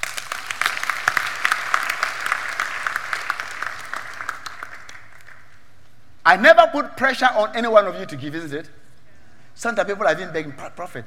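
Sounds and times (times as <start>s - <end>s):
audience applause: 0.0s - 5.5s
speech: 6.3s - 8.8s, 9.6s - 11.0s.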